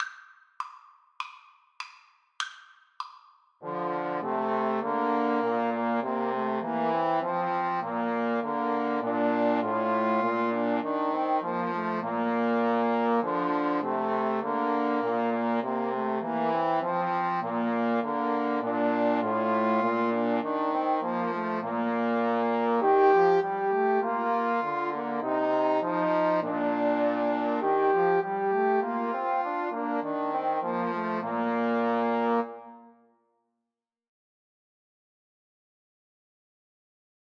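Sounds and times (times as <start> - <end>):
trombone trio: 3.6 - 32.6.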